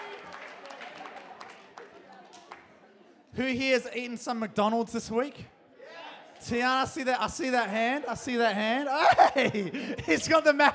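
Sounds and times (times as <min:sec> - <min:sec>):
audience clapping: 0:00.0 - 0:02.8
speech: 0:03.3 - 0:05.6, 0:06.4 - 0:10.7
laughter: 0:07.8 - 0:10.7.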